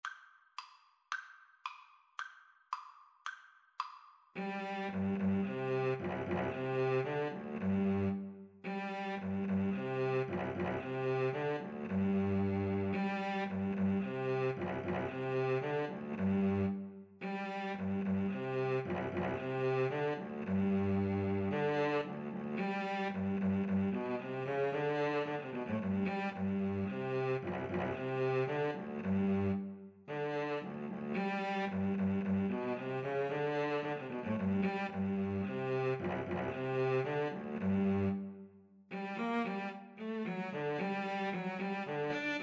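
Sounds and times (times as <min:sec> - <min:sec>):
violin and cello duet: 0:04.4 - 0:42.4.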